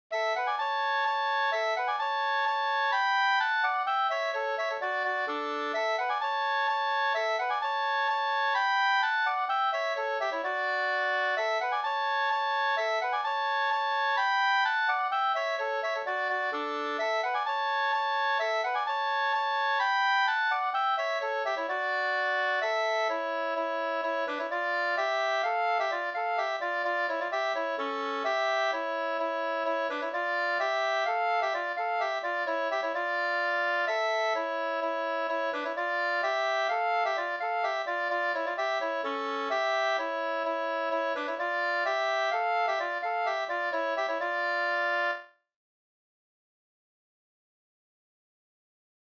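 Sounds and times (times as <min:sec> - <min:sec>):
two-part polska: 0:00.1 - 0:45.3.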